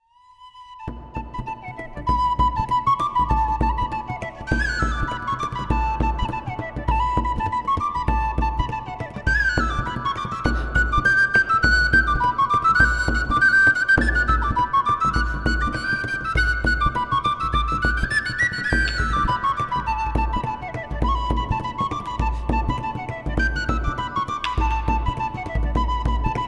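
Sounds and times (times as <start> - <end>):
flute solo: 0.0 - 26.4
bodhran drum: 0.9 - 26.4.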